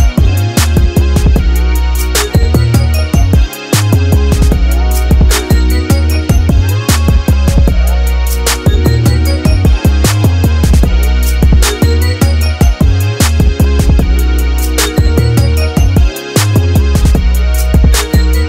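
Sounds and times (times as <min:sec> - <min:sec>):
instrumental rap type beat: 0:00.0 - 0:18.4.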